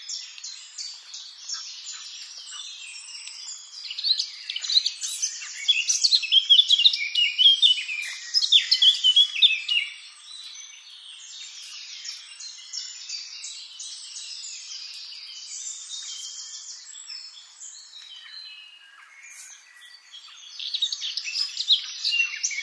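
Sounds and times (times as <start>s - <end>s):
Eurasian blackcap warbling song: 0.0s - 22.6s.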